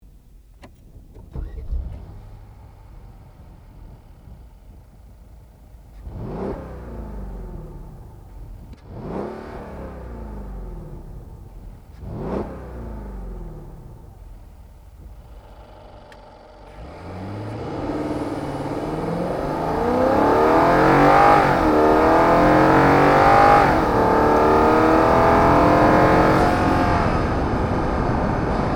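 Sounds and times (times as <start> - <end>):
Mercedes Benz CL550 car: 0.0 - 28.7.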